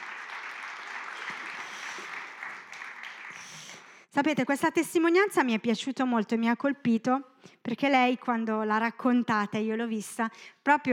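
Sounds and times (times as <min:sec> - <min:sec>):
audience applause: 0:00.0 - 0:03.7
speech: 0:04.2 - 0:10.9.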